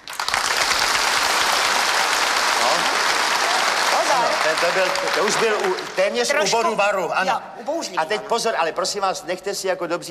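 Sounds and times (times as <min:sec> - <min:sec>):
warm audience applause: 0:00.0 - 0:06.6
speech: 0:04.5 - 0:10.1.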